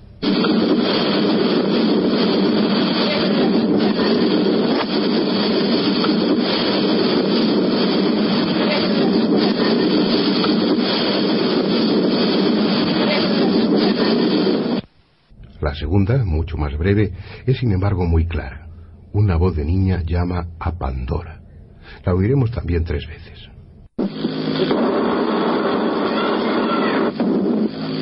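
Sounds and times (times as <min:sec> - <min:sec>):
rumbling hissing background noise of a psychophony recording: 0:00.0 - 0:28.0
speech: 0:16.6 - 0:21.4, 0:22.0 - 0:23.5.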